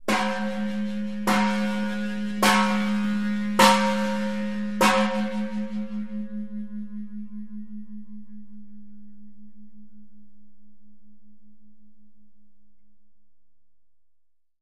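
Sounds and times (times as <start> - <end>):
Khmer temple bell ringing in bell towers: 0.0 - 8.9.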